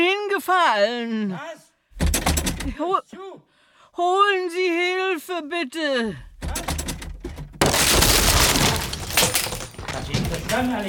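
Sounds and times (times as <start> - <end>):
speech: 0.4 - 1.6, 2.6 - 6.3, 10.0 - 10.8
door being kicked in: 6.4 - 10.8.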